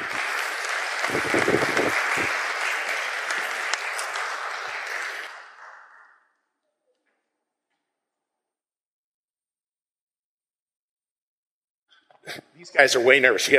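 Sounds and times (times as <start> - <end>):
crowd clapping: 0.0 - 6.6
speech: 12.7 - 13.5.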